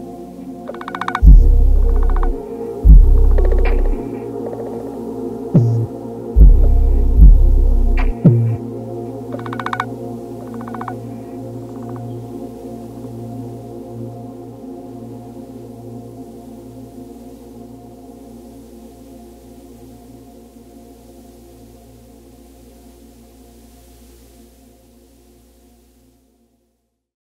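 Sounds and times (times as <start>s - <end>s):
beat remix: 0.7s - 4.1s, 5.6s - 8.6s, 9.4s - 11.0s.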